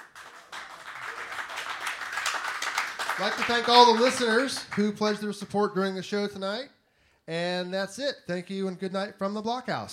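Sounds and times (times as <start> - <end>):
live audience applauding at the Blockhouse: 0.0 - 5.4
speech: 3.2 - 9.9.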